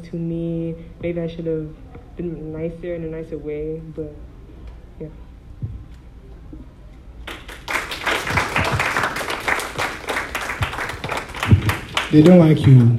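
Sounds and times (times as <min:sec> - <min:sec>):
speech: 0:00.0 - 0:04.3, 0:05.0 - 0:05.2, 0:12.1 - 0:12.9
audience clapping: 0:07.2 - 0:12.9.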